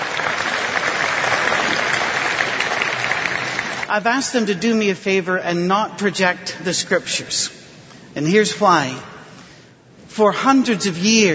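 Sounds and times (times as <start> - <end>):
audience applause: 0.0 - 3.9
speech: 3.9 - 7.6, 8.2 - 9.1, 10.2 - 11.3.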